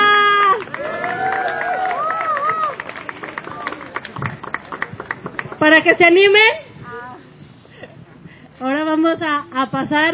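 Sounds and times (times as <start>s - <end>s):
crowd whooping and cheering: 0.0s - 5.2s
crowd clapping: 0.2s - 5.7s
speech: 5.8s - 6.6s, 9.1s - 10.1s.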